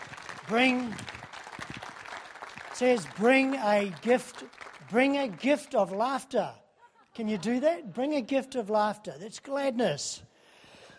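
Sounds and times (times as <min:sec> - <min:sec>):
audience applause: 0:00.0 - 0:06.0
speech: 0:00.5 - 0:01.1, 0:02.8 - 0:06.6, 0:07.2 - 0:10.3
laughter: 0:06.8 - 0:08.5.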